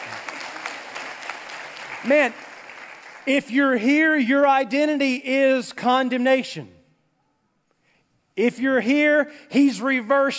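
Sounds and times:
audience clapping: 0.0s - 3.8s
speech: 2.0s - 2.5s, 3.2s - 6.8s, 8.4s - 10.3s.

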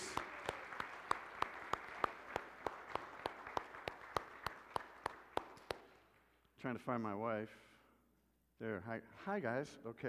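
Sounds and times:
audience applause: 0.0s - 5.7s
speech: 6.6s - 7.7s, 8.6s - 10.0s.

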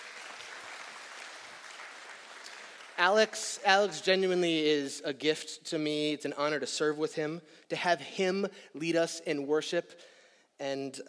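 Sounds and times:
audience applause: 0.0s - 3.0s
speech: 3.0s - 11.0s.

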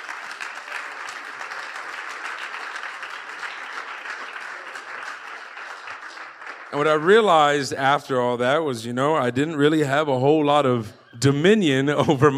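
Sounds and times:
crowd clapping: 0.0s - 7.7s
speech: 6.7s - 12.3s.

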